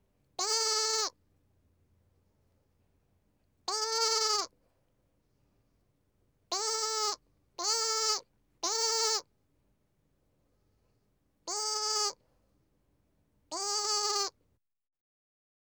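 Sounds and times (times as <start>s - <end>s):
lamb bleating: 0.4s - 1.2s, 3.7s - 4.5s, 6.5s - 9.3s, 11.5s - 12.2s, 13.5s - 14.4s.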